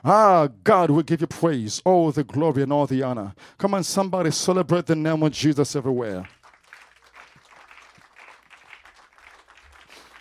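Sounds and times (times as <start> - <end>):
speech: 0.0 - 6.4
audience clapping hands: 6.0 - 10.1.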